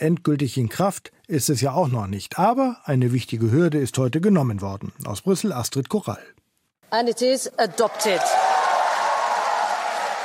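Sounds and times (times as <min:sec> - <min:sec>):
speech: 0:00.0 - 0:08.5
lawmakers cheering and clapping in parliament chamber: 0:07.6 - 0:10.2.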